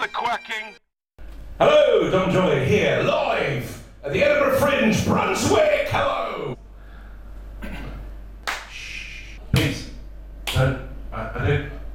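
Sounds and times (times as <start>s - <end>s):
speech: 0.0s - 0.9s, 1.6s - 6.6s, 10.6s - 11.8s
lone audience member clapping: 8.4s - 8.7s.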